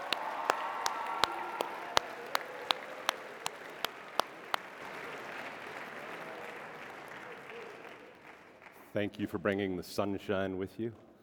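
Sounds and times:
audience applause: 0.0s - 8.8s
speech: 9.0s - 11.0s.

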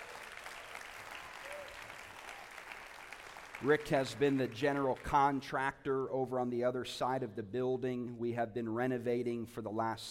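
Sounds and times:
audience applause: 0.0s - 5.1s
speech: 3.6s - 10.0s.

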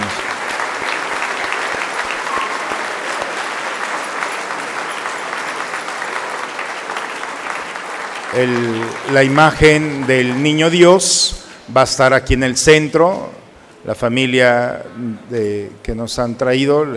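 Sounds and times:
audience applause: 0.0s - 11.3s
speech: 8.4s - 16.9s.

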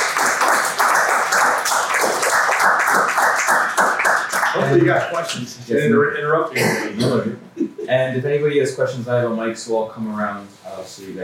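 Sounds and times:
audience applause: 0.0s - 5.2s
speech: 4.6s - 11.2s.

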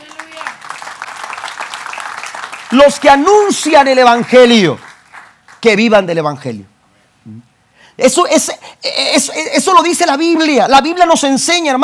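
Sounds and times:
audience applause: 0.0s - 5.6s
speech: 2.7s - 4.8s, 5.6s - 11.8s.

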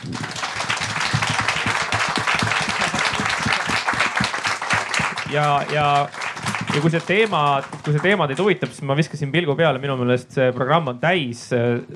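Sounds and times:
audience applause: 0.0s - 8.6s
speech: 5.3s - 11.9s.

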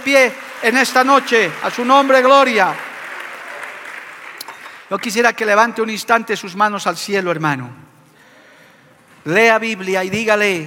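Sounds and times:
speech: 0.0s - 2.9s, 4.9s - 7.8s, 9.2s - 10.6s
audience applause: 0.0s - 5.3s.

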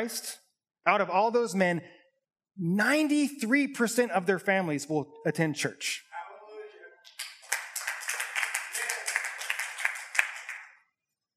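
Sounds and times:
speech: 0.0s - 2.0s, 2.6s - 6.1s
person clapping: 7.1s - 10.8s.

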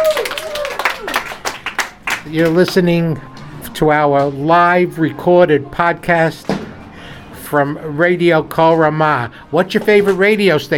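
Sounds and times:
audience applause: 0.0s - 2.6s
speech: 2.3s - 6.5s, 7.5s - 10.7s.

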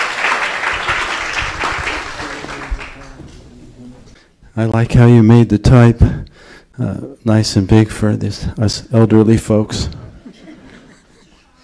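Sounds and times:
audience applause: 0.0s - 3.4s
speech: 4.6s - 10.0s
laughter: 10.2s - 11.6s.

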